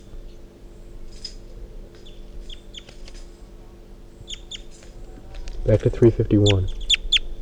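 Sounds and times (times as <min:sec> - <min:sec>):
birds clucking and chirping: 0:04.3 - 0:07.3
steady low buzzing drone: 0:05.4 - 0:07.0
speech: 0:05.7 - 0:06.8.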